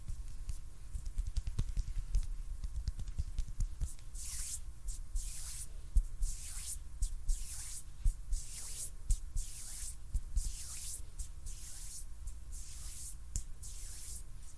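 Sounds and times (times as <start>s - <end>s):
low muffled hand rubbing: 0.1s - 14.5s
bright hissing hand swishes: 5.2s - 14.5s.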